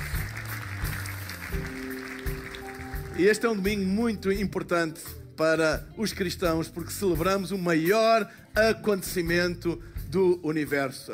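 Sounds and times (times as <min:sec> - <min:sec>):
audience applause: 0:00.0 - 0:03.8
speech: 0:01.5 - 0:01.8, 0:03.2 - 0:11.1.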